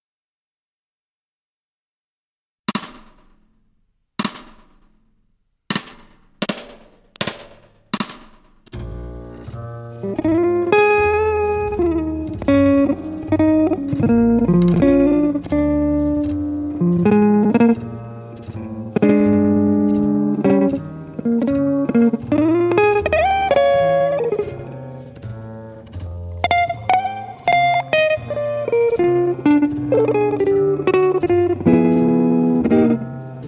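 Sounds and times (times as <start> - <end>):
blues in B flat: 8.7 - 33.4.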